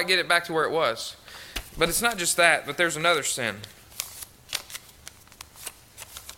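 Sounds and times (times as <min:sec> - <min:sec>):
speech: 0:00.0 - 0:03.8
creased sheet of paper crinkling as it is unfolded and smoothed out: 0:03.6 - 0:06.3.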